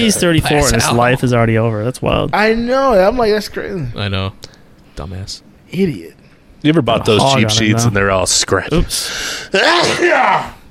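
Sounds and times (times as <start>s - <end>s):
speech: 0.0s - 10.6s
sneeze: 9.6s - 10.5s.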